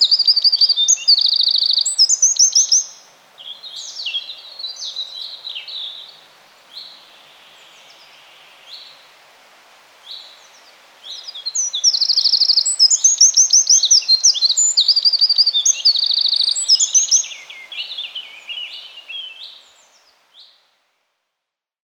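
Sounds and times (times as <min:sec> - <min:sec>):
Eurasian wren trilling song: 0:00.0 - 0:09.0, 0:10.1 - 0:20.5.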